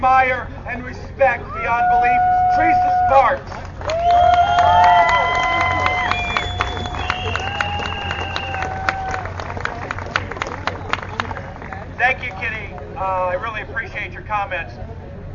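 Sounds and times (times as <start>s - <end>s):
speech: 0.0s - 4.9s, 12.0s - 14.9s
crowd cheering and whooping: 1.4s - 11.0s
crowd applause: 1.8s - 12.9s.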